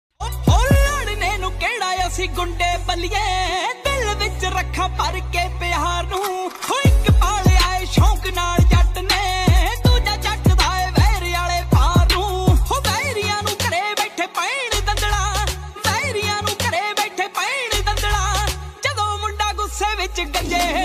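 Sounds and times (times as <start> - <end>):
popular Punjabi ringtone music: 0.2 - 3.2, 3.8 - 20.8.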